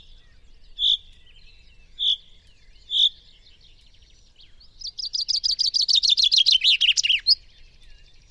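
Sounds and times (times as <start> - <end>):
common chaffinch Fringilla coelebs calling: 0.0 - 3.3, 4.7 - 7.4.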